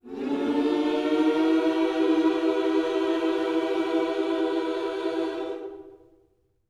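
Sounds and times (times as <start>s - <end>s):
gospel music in minor key: 0.0s - 6.2s.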